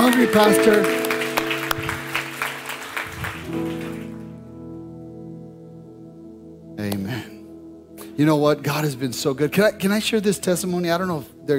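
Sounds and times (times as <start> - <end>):
audience applauding: 0.0 - 4.4
speech: 0.2 - 1.0, 8.2 - 11.5.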